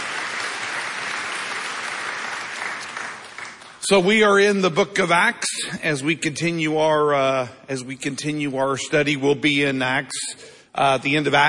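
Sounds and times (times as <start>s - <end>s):
church congregation in Norman applauding during a service: 0.0s - 4.4s
speech: 3.9s - 11.4s.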